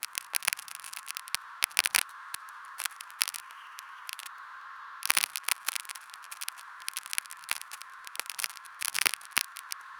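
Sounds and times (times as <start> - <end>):
granola crunching: 0.0 - 2.0, 5.0 - 9.8.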